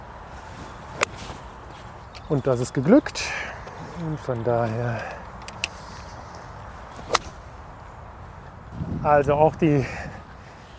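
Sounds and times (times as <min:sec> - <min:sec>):
speech: 0:02.3 - 0:03.3, 0:04.0 - 0:05.2, 0:09.0 - 0:10.0
golf club striking the ball on a golf course: 0:07.1 - 0:07.4.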